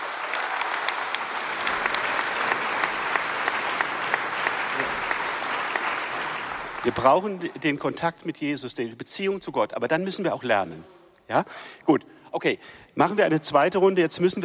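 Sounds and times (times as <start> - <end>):
audience applause: 0.0 - 7.7
speech: 6.8 - 14.4.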